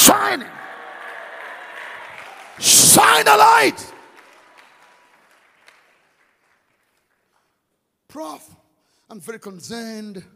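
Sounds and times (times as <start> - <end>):
audience screaming: 0.0 - 4.2
audience clapping: 0.0 - 7.8
speech: 0.1 - 0.6, 2.6 - 3.9, 8.1 - 10.3.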